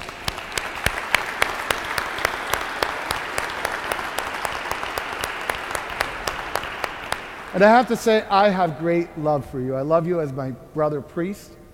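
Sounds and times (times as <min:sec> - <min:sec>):
audience applause: 0:00.0 - 0:08.2
speech: 0:07.6 - 0:11.6.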